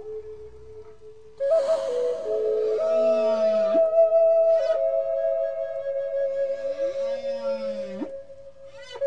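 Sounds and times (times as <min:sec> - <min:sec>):
whale calls recorded at Península Valdés: 0:01.4 - 0:05.0, 0:06.3 - 0:09.0.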